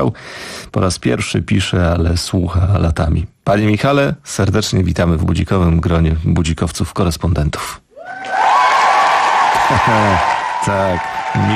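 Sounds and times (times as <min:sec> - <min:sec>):
speech: 0:00.0 - 0:07.8, 0:09.7 - 0:11.5
applause welcoming a new correspondent into a listeners' group: 0:08.1 - 0:11.5.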